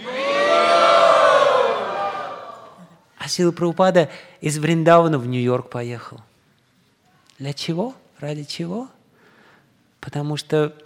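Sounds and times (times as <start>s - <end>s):
crowd shouting a devotional chant: 0.0s - 2.8s
speech: 3.3s - 6.3s, 7.4s - 9.0s, 10.0s - 10.8s.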